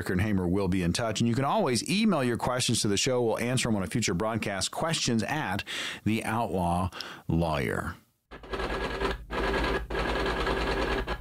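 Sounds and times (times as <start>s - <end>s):
speech: 0.0s - 8.0s
typewriter typing: 8.3s - 11.2s.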